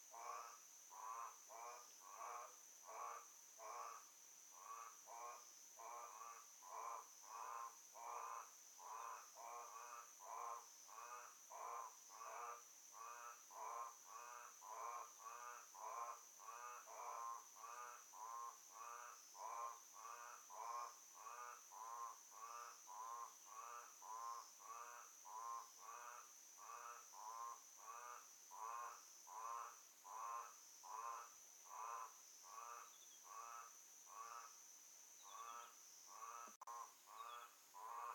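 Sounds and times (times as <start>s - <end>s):
frogs croaking: 0.0s - 38.1s.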